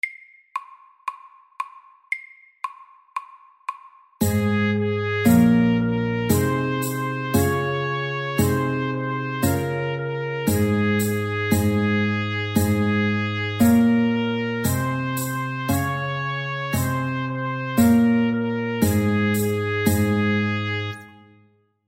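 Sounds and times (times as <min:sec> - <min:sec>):
Norwegian folk tune: 0:04.2 - 0:21.3.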